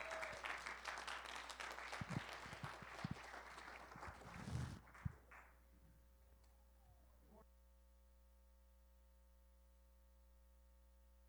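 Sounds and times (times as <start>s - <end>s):
audience applause welcoming a speaker to the front: 0.0s - 5.5s.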